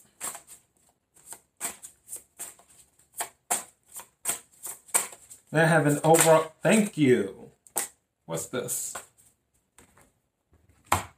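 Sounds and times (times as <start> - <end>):
tarot cards being shuffled and drawn: 0.1 - 6.5
speech: 5.5 - 7.4, 8.3 - 9.0.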